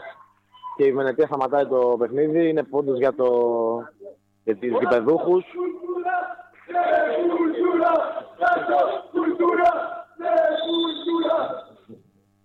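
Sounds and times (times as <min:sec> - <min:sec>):
speech: 0:00.8 - 0:11.6
volleyball fans chanting personal chants: 0:04.8 - 0:11.8.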